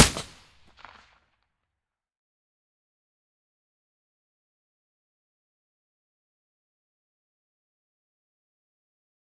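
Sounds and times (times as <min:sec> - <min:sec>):
silenced gunshot: 0:00.0 - 0:01.0.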